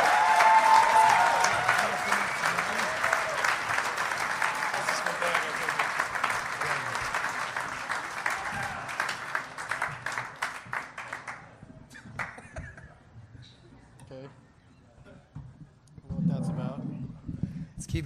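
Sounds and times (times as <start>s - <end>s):
audience clapping: 0.0s - 12.6s.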